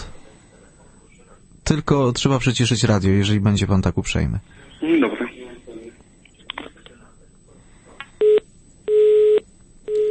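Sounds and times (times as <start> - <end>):
speech: 1.7 - 5.0
telephone busy tone on a radio call-in line after the caller hangs up: 8.2 - 10.0.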